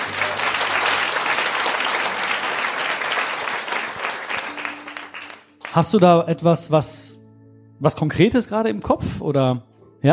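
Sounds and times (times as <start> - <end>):
audience applause: 0.0 - 5.9
speech: 5.8 - 7.2, 7.8 - 10.1.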